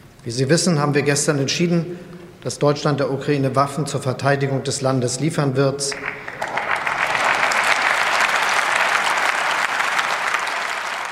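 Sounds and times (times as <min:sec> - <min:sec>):
speech: 0:00.2 - 0:06.2
applause in parliament from a large assembly: 0:05.9 - 0:11.1.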